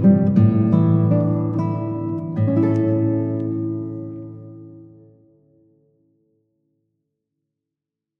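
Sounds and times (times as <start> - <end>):
classical guitar: 0.0 - 6.4.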